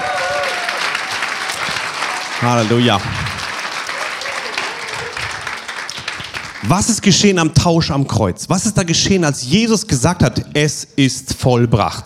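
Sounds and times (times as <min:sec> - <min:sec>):
audience applause: 0:00.0 - 0:07.1
speech: 0:02.4 - 0:03.2, 0:06.6 - 0:12.0.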